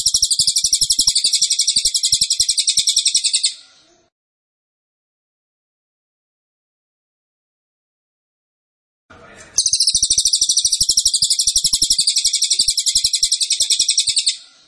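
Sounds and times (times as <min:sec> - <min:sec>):
cililin singing a metallic trill: 0:00.0 - 0:03.6, 0:09.6 - 0:14.6.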